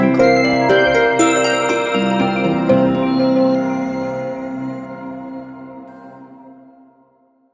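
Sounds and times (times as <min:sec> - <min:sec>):
elegant logo music: 0:00.1 - 0:07.1.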